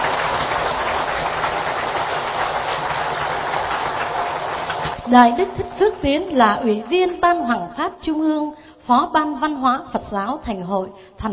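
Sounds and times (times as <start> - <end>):
large audience applause at a Buddhist dharma lecture: 0.0 - 7.2
speech: 5.1 - 11.3.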